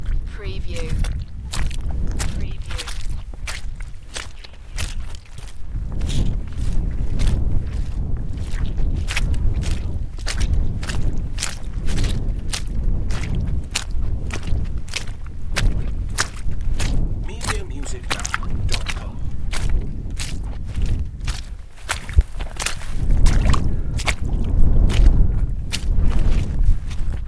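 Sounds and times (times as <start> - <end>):
wind: 0.0 - 27.2
hiking footsteps in puddles: 0.9 - 27.2.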